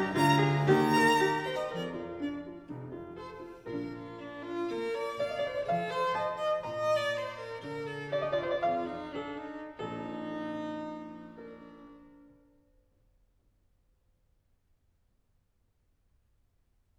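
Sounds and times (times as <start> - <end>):
violin and piano sonata in F major, Andante: 0.0 - 12.5.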